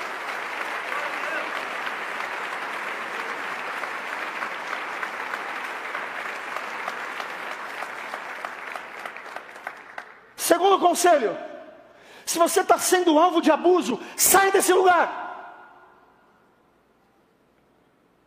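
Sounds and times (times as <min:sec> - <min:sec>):
crowd audience applause: 0:00.0 - 0:10.3
speech: 0:10.5 - 0:11.5, 0:12.3 - 0:15.2.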